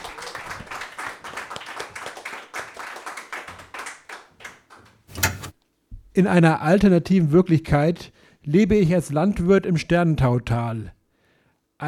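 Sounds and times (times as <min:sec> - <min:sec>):
audience applause: 0:00.0 - 0:04.6
speech: 0:06.2 - 0:11.0.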